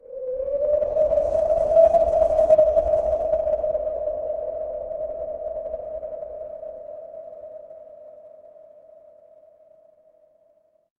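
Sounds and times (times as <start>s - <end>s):
wind: 0.0s - 9.9s.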